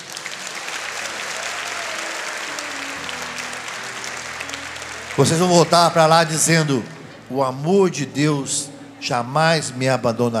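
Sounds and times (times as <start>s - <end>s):
crowd applauding: 0.0s - 8.1s
speech: 5.2s - 10.3s.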